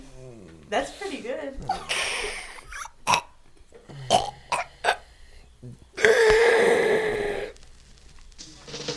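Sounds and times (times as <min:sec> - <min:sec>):
speech: 0:00.7 - 0:02.4
person imitating an old man snoring: 0:01.6 - 0:03.3, 0:03.9 - 0:07.6.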